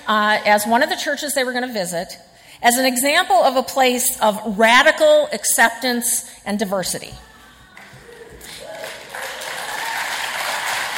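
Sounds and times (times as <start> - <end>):
speech: 0.1 - 7.3
audience applause: 7.8 - 10.9.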